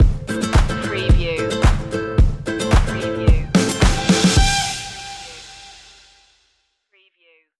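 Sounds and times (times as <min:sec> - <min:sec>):
latin stomp stinger: 0:00.0 - 0:05.2.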